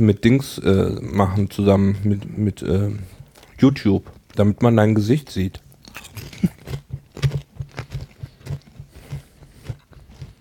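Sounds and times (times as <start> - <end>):
speech: 0.0 - 6.5
crunchy chewing of sweet peppers: 2.8 - 10.3.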